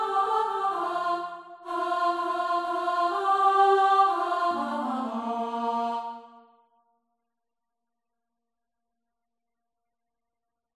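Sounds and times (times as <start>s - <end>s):
female choir singing: 0.0s - 6.4s.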